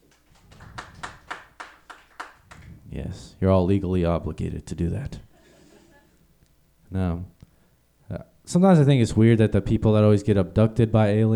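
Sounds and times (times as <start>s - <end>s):
audience clapping: 0.0s - 2.8s
speech: 3.0s - 5.3s, 6.9s - 7.4s, 8.1s - 11.3s.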